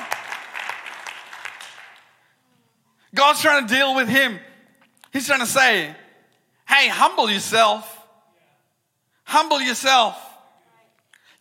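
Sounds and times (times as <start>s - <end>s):
church congregation clapping during a sermon: 0.0s - 2.4s
speech: 3.1s - 4.5s, 5.1s - 6.0s, 6.8s - 7.9s, 9.3s - 10.2s.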